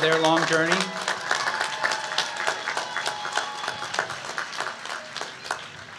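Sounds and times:
audience applause: 0:00.0 - 0:05.9.

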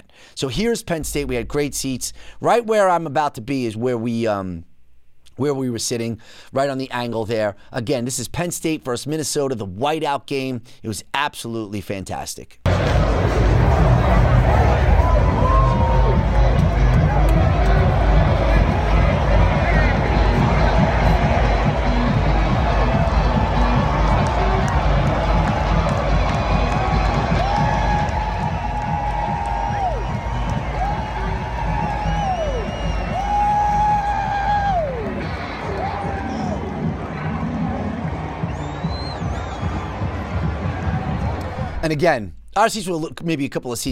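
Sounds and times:
speech: 0:00.3 - 0:04.7, 0:05.4 - 0:13.5, 0:42.0 - 0:43.9
rowdy football stadium crowd cheering and yelling: 0:12.7 - 0:41.8.

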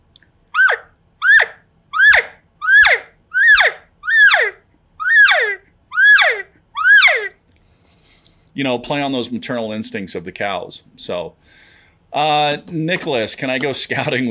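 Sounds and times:
elk distressed calf calls: 0:00.5 - 0:07.4
speech: 0:08.6 - 0:14.2.

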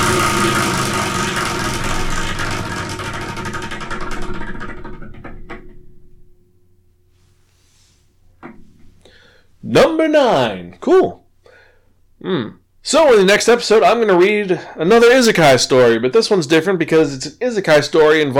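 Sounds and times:
selection wheel spinning with a whirring clatter: 0:00.0 - 0:04.6
speech: 0:09.7 - 0:11.2, 0:12.2 - 0:18.3.

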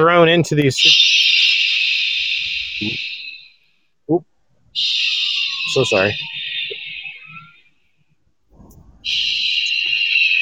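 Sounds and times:
speech: 0:00.0 - 0:01.3, 0:02.8 - 0:03.1, 0:04.1 - 0:05.0, 0:05.8 - 0:06.3
sirens: 0:00.8 - 0:03.5, 0:04.8 - 0:07.7, 0:09.0 - 0:10.4.

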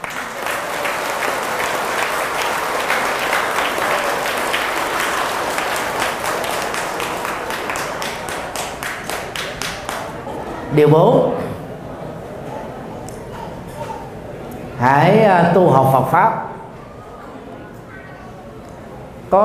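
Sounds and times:
audience applause: 0:00.0 - 0:10.4
speech: 0:10.8 - 0:11.4, 0:14.8 - 0:16.4.

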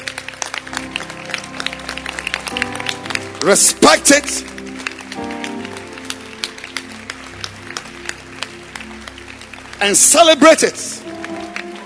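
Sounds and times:
church congregation clapping hands during a service: 0:00.0 - 0:11.8
speech: 0:03.4 - 0:04.5, 0:09.8 - 0:11.1.

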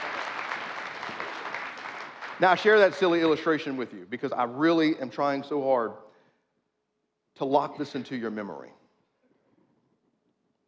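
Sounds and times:
audience applause: 0:00.0 - 0:03.4
speech: 0:02.4 - 0:06.1, 0:07.4 - 0:08.8.

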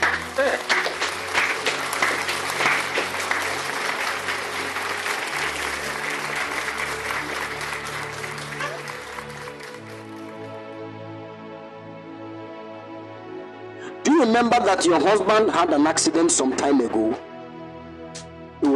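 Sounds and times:
church congregation clapping during a service: 0:00.0 - 0:10.8
speech: 0:14.3 - 0:17.3.

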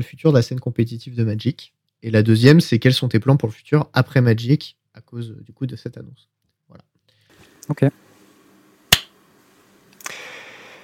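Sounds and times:
speech: 0:00.0 - 0:06.9, 0:07.7 - 0:08.0
single hand clap: 0:08.9 - 0:09.2.

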